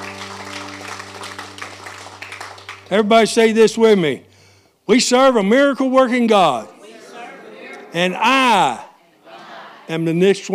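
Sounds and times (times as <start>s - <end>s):
audience applause: 0.0s - 3.5s
speech: 2.9s - 4.3s, 4.9s - 6.8s, 7.9s - 8.8s, 9.9s - 10.5s.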